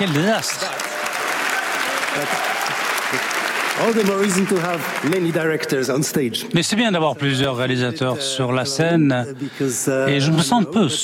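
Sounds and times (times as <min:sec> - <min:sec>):
speech: 0:00.0 - 0:00.9, 0:02.1 - 0:11.0
audience applause: 0:00.0 - 0:06.0.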